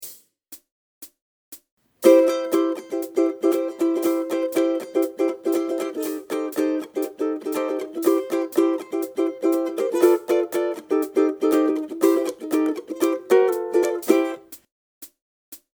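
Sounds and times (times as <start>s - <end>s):
ukulele strumming: 2.0s - 14.5s.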